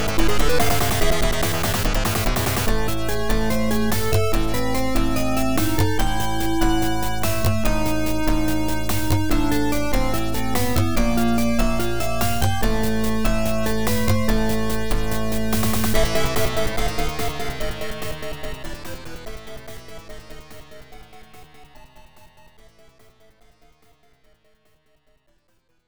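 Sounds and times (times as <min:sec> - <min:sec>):
battle music: 0:00.0 - 0:20.1.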